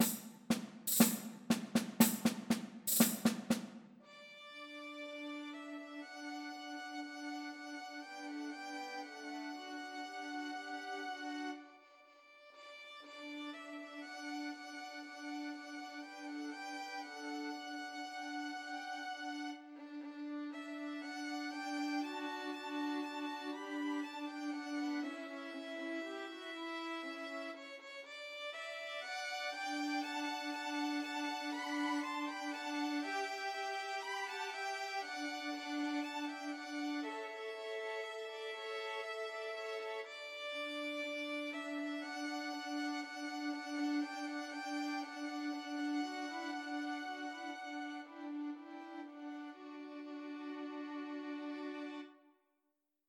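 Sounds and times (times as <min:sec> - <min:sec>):
three violins playing Christmas trio: 0:00.0 - 0:52.2.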